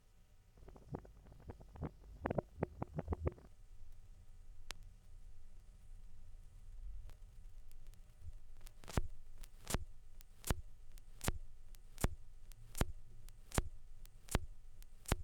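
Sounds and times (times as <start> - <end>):
vinyl record noise: 0.6 - 4.0, 7.1 - 15.2.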